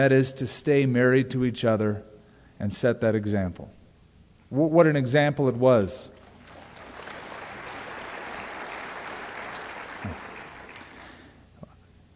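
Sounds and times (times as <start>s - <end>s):
speech: 0.0s - 3.8s, 4.5s - 6.2s
weak audience applause: 6.2s - 11.4s.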